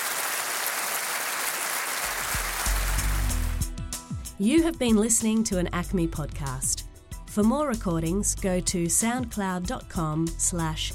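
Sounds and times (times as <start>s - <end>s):
audience applause: 0.0s - 3.6s
speech: 4.4s - 10.9s.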